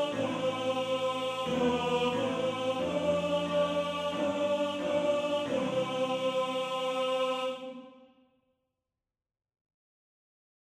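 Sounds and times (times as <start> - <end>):
tenor singing: 0.0 - 7.9.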